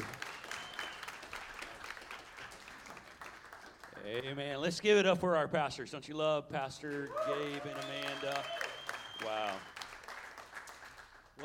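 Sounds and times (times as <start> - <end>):
audience applause welcoming a pastor at a church service: 0.0 - 4.1, 7.1 - 11.4
speech: 4.0 - 8.6, 9.2 - 9.7.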